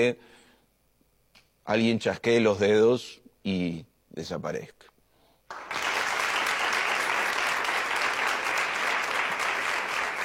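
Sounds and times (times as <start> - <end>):
speech: 0.0 - 0.4, 1.6 - 4.9
audience applause: 5.5 - 10.2.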